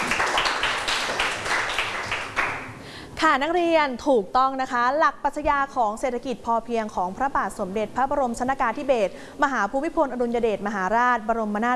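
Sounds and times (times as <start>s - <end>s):
students clapping: 0.0s - 2.8s
speech: 3.2s - 11.7s.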